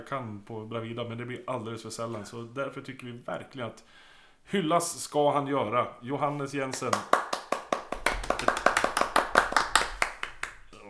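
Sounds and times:
speech: 0.0s - 7.2s
weak, half-hearted applause: 6.7s - 10.8s.

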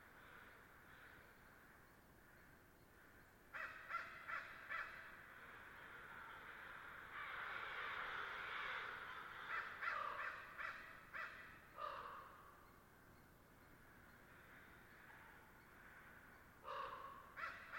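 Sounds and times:
soft ravens and crows calls: 0.0s - 17.7s
ravens and crows cawing at their roost: 2.3s - 12.5s, 14.4s - 17.7s.

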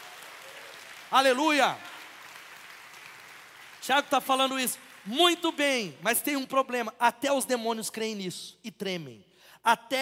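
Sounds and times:
audience applauding: 0.0s - 6.0s
speech: 1.1s - 1.9s, 3.9s - 10.0s.

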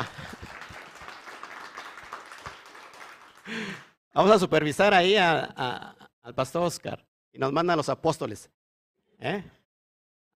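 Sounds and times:
audience applause for the apostles: 0.0s - 3.8s
speech: 3.5s - 8.6s, 9.2s - 9.6s.

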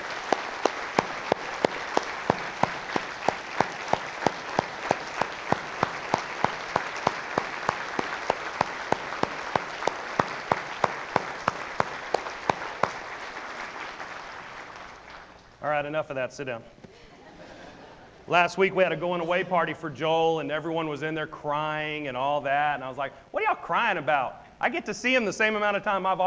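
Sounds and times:
thundering round of applause from audience: 0.0s - 15.4s
speech: 15.8s - 16.8s, 18.3s - 26.2s
laughter: 17.0s - 18.3s.

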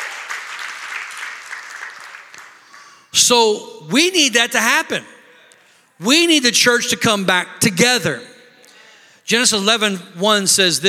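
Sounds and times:
audience clapping: 0.0s - 3.0s
speech: 3.1s - 5.1s, 6.0s - 8.3s, 9.3s - 10.8s.

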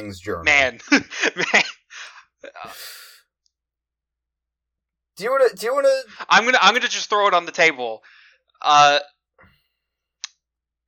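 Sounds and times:
speech: 0.0s - 1.8s, 2.4s - 3.1s, 5.2s - 9.5s
deep breath inhale and exhale: 8.0s - 8.4s.

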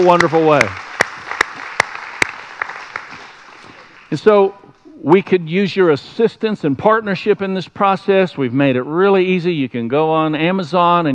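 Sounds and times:
speech: 0.0s - 0.8s, 4.1s - 11.1s
crowd applause: 0.0s - 4.3s.

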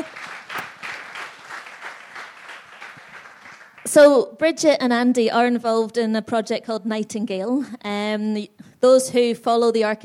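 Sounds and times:
audience clapping: 0.0s - 4.1s
speech: 3.9s - 10.0s.

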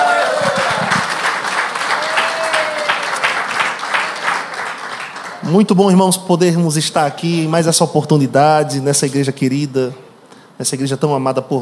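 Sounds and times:
brief cheers: 0.0s - 4.6s
audience applause: 0.0s - 5.6s
speech: 5.5s - 10.0s, 10.6s - 11.5s.

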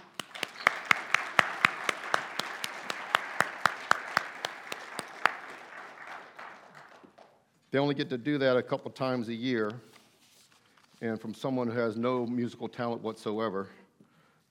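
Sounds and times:
audience applauding: 0.0s - 7.4s
speech: 7.7s - 9.9s, 11.0s - 13.8s.

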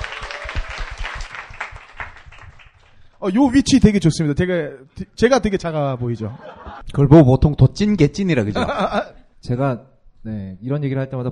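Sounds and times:
audience applause: 0.0s - 3.1s
speech: 3.2s - 11.3s
laughter: 6.0s - 6.8s, 8.4s - 9.2s.

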